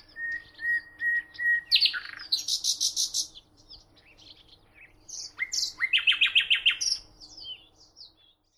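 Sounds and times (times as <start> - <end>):
common nightingale song Luscinia megarhynchos: 0.0 - 8.5.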